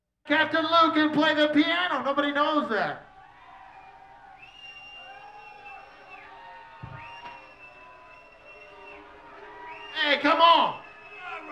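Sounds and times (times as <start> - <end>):
speech: 0.3 - 3.1, 10.2 - 10.8
crowd yelling and cheering: 0.5 - 11.5
brief thump: 6.8 - 7.4.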